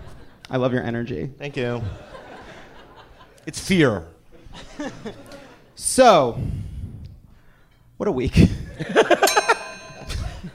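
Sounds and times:
laughter: 0.0 - 0.4, 1.7 - 3.4, 4.3 - 5.8, 8.6 - 10.5
speech: 0.5 - 2.1, 3.4 - 6.6, 8.0 - 9.4
bell dings: 9.2 - 10.5.

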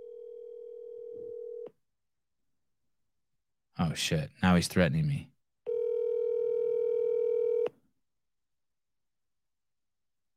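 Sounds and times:
telephone tone: 0.0 - 1.7, 5.7 - 7.7
speech: 3.8 - 5.3.

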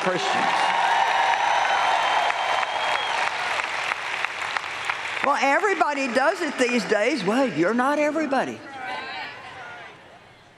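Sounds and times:
speech: 0.0 - 0.7, 5.2 - 8.7
audience clapping: 0.0 - 7.4.

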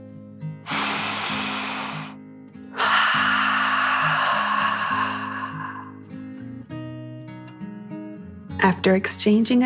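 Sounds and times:
deep breathing in and out: 0.6 - 6.5
soft steady music: 6.0 - 9.6
speech: 8.6 - 9.6.

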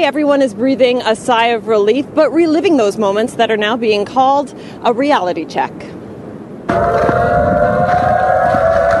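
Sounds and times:
speech: 0.0 - 6.0, 6.7 - 8.0
low rumble: 6.6 - 8.9
tsunami warning siren wailing: 6.7 - 8.9.

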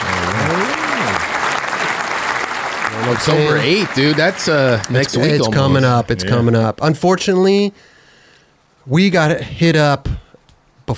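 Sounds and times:
audience applause: 0.0 - 5.7
speech: 3.1 - 7.9, 8.8 - 10.2.

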